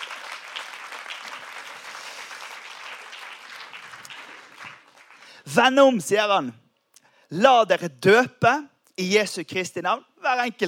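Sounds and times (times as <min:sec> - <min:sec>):
audience applauding: 0:00.0 - 0:05.5
speech: 0:05.5 - 0:06.6, 0:07.3 - 0:10.6.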